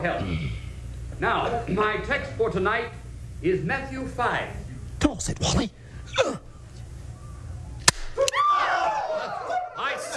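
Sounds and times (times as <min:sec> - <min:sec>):
speech: 0:00.0 - 0:00.6, 0:01.2 - 0:06.5
firecracker exploding: 0:07.8 - 0:08.3
laughter: 0:08.2 - 0:10.1.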